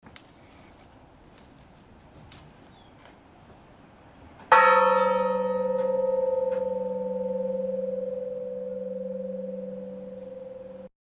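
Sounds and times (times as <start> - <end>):
bell ringing: 4.5 - 10.9.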